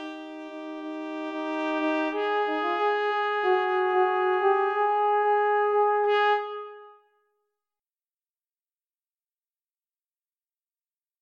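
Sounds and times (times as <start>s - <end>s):
jazzy Christmas carol on trumpet: 0.0s - 7.1s.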